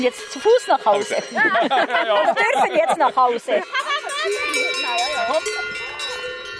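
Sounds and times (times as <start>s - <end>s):
speech: 0.0s - 4.6s, 5.3s - 5.9s
cowbells clanging as cattle are driven: 0.0s - 6.5s
laughter: 1.2s - 5.9s.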